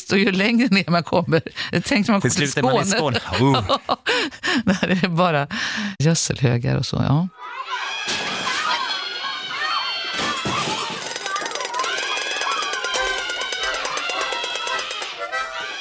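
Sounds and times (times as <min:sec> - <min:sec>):
speech: 0:00.0 - 0:07.6
laughter: 0:02.3 - 0:05.2
chaotic noise of rowdy children: 0:07.3 - 0:15.8.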